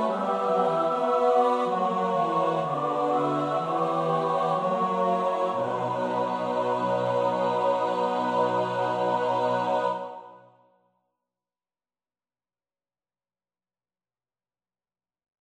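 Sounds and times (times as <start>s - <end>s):
soprano alto tenor bass voices: 0.0s - 10.3s.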